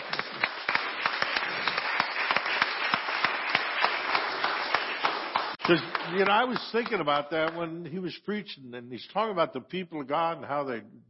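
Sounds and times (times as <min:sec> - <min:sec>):
audience clapping: 0:00.0 - 0:07.7
speech: 0:05.7 - 0:11.0.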